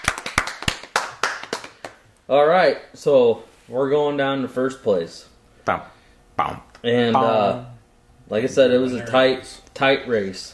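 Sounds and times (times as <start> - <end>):
golf clap: 0.0 - 2.0
speech: 2.3 - 10.5.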